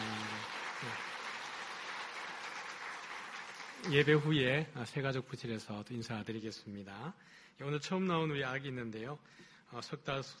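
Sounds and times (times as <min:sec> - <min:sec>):
audience applauding to welcome newcomers: 0:00.0 - 0:04.6
speech: 0:03.8 - 0:10.3.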